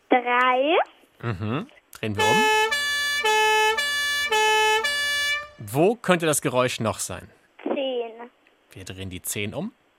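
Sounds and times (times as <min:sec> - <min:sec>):
speech: 0:00.1 - 0:02.7, 0:05.6 - 0:07.4, 0:08.7 - 0:09.8
police siren: 0:02.2 - 0:05.6.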